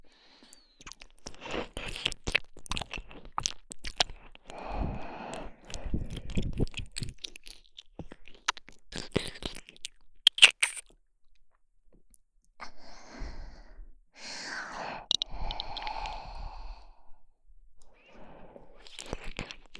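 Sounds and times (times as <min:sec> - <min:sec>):
ear licking in the right ear: 0:00.9 - 0:10.9, 0:14.8 - 0:16.9, 0:17.9 - 0:19.7.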